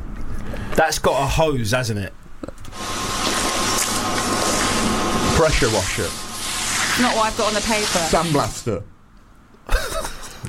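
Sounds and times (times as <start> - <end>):
speech: 0.8 - 2.8, 5.4 - 6.2, 7.0 - 8.9
mop being pushed across a floor: 3.2 - 8.5.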